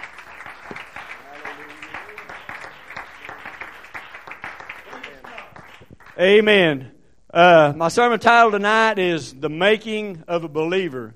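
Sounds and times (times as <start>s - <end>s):
audience clapping: 0.0s - 6.4s
speech: 6.2s - 11.1s.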